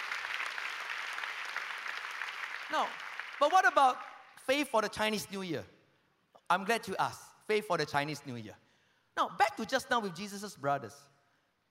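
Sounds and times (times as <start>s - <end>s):
church congregation applauding during a service: 0.0s - 4.3s
speech: 2.7s - 5.8s, 6.5s - 8.6s, 9.2s - 11.1s.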